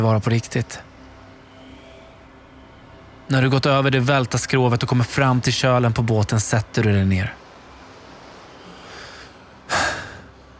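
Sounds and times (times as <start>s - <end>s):
speech: 0.0s - 0.9s, 3.3s - 7.4s
deep gasping breath: 8.6s - 10.4s.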